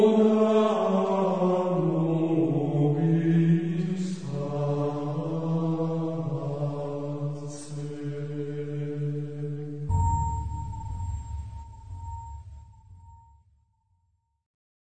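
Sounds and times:
Gregorian chant: 0:00.0 - 0:10.6.

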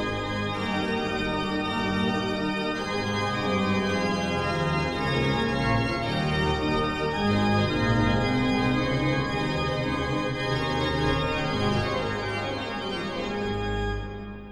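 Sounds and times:
organ concerto in G allegro: 0:00.0 - 0:14.5.

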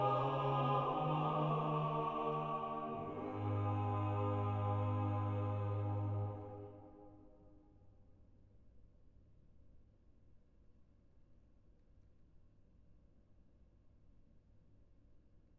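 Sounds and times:
organ chorale: 0:00.0 - 0:07.2.

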